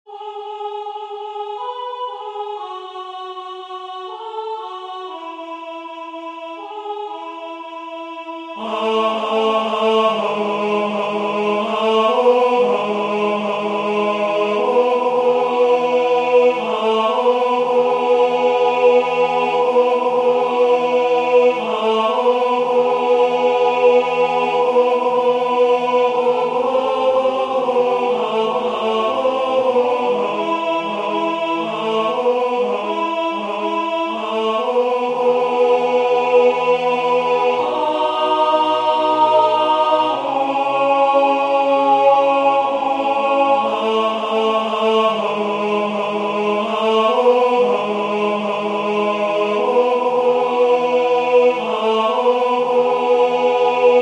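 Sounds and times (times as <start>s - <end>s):
tenor singing: 0.1s - 54.0s.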